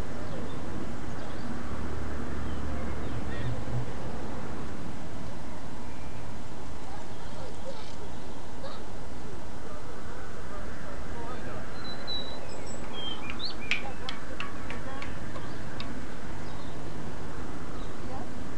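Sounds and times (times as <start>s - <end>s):
birdsong by a river: 0.1s - 4.2s, 5.2s - 18.5s.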